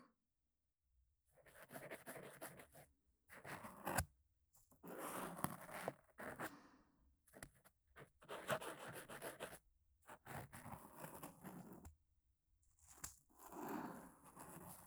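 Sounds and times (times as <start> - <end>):
ear cleaning sounds in the right ear: 1.5 - 4.0, 4.8 - 6.5, 7.4 - 11.9, 12.8 - 14.8.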